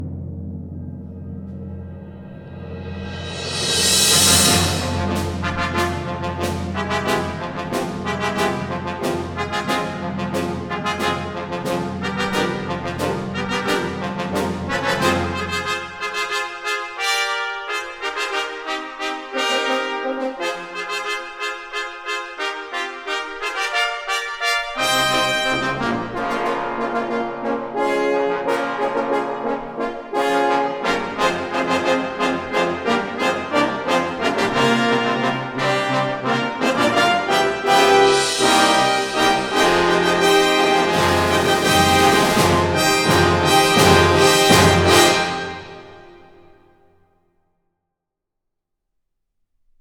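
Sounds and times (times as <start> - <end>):
military fanfare: 2.1 - 46.9.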